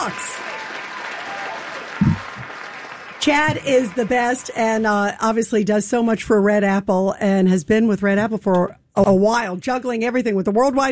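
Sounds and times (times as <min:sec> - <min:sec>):
speech: 0:00.0 - 0:00.3, 0:03.2 - 0:10.8
applause congratulating someone on winning a business award: 0:00.0 - 0:04.9.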